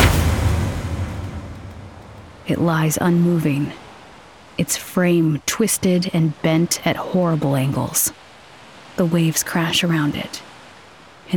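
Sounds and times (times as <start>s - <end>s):
heavy machine slamming onto rocks: 0.0s - 2.4s
loud low rumble: 0.0s - 4.0s
speech: 2.5s - 3.8s, 4.6s - 8.2s, 9.0s - 10.5s.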